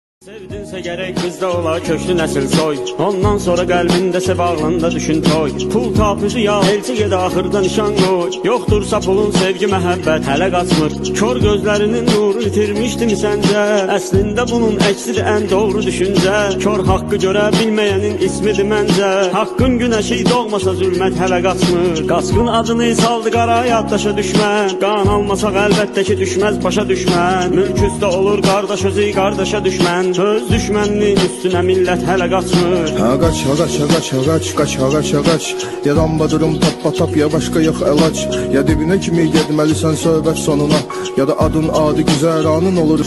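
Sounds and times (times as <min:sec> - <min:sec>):
Azeri trap music: 0:00.2 - 0:43.0.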